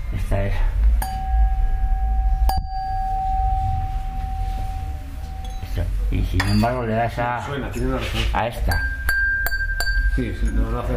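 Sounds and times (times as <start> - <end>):
speech: 0.3 - 0.8, 6.3 - 8.9, 10.2 - 10.9
lead crystal wine glass tapped and ringing: 1.0 - 7.0, 8.7 - 10.9.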